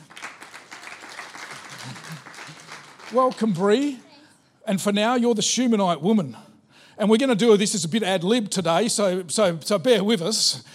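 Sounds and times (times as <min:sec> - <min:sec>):
faint audience applause greeting a young assistant: 0:00.0 - 0:04.1
speech: 0:03.1 - 0:04.1, 0:04.7 - 0:10.7.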